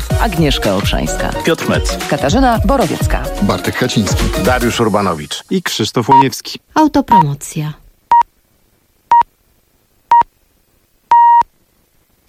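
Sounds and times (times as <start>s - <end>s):
speech: 0.2s - 7.8s
radio hourly time signal pips: 6.1s - 6.3s, 11.1s - 11.5s.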